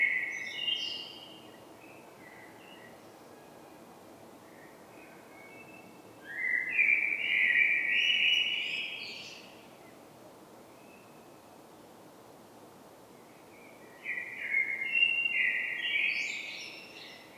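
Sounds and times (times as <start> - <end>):
common blackbird Turdus merula song with fluted whistled phrases: 0.0 - 3.1, 4.4 - 9.6, 13.3 - 17.3.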